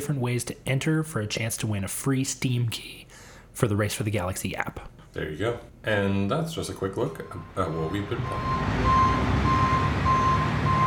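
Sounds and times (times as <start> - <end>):
speech: 0.0 - 9.3
truck reversing alarm beeps: 7.3 - 10.8.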